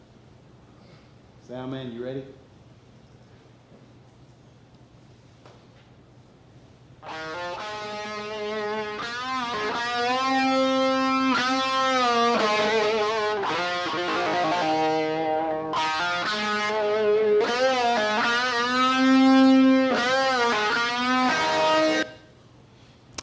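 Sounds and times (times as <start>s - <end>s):
speech: 1.5s - 2.5s
screaming distorted electric guitar playing a rock melody: 7.0s - 22.3s.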